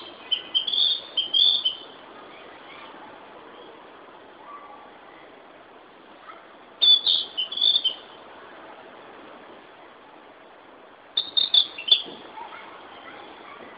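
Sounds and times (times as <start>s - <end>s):
Ficedula narcissina singing: 0.0s - 2.4s, 6.8s - 8.1s, 11.2s - 12.1s.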